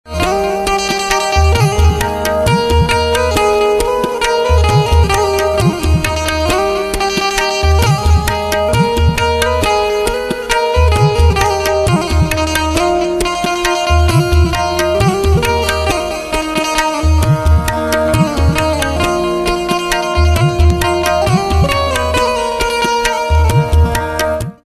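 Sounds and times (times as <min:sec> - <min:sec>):
banjo instrumental ringtone: 0:00.2 - 0:24.6.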